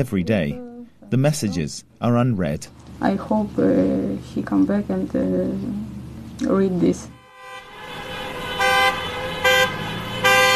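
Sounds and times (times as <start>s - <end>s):
speech: 0.0s - 7.2s
traffic rumble: 0.0s - 10.5s
car horns honking: 7.0s - 10.5s.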